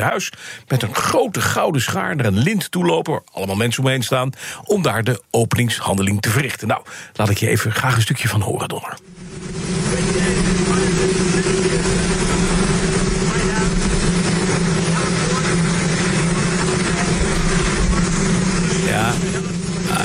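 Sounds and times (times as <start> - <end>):
speech: 0.0 - 10.8
indistinct voices: 8.8 - 20.0
helicopter engine warming up: 9.0 - 20.0.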